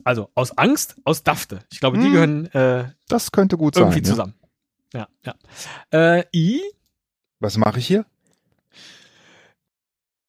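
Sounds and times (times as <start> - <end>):
speech: 0.0 - 6.8, 7.4 - 8.1
person breathing in: 8.7 - 9.6.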